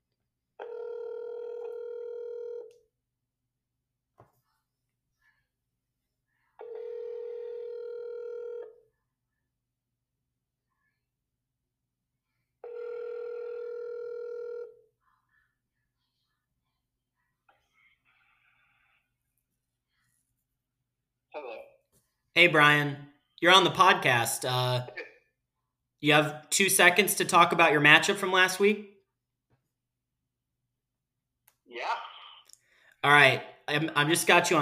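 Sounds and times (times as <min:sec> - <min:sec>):
telephone ringback tones while placing an outgoing call: 0:00.6 - 0:02.7, 0:06.6 - 0:08.8, 0:12.6 - 0:14.8
speech: 0:21.4 - 0:21.7, 0:22.4 - 0:25.0, 0:26.0 - 0:28.9, 0:31.7 - 0:32.0, 0:33.0 - 0:34.5.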